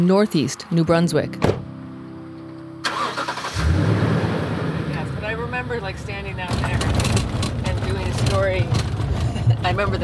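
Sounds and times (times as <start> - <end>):
speech: 0.0 - 1.6, 9.7 - 10.0
car engine driving around Eskinobitich in northeast New Brunswick: 2.9 - 10.0.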